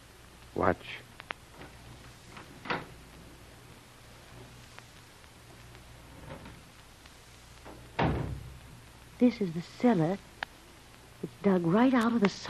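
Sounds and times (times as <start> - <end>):
low steady hum: 0.0 - 12.4
speech: 0.6 - 1.1, 9.2 - 10.3, 11.4 - 12.4
door creaking open: 1.6 - 3.0, 7.7 - 8.6.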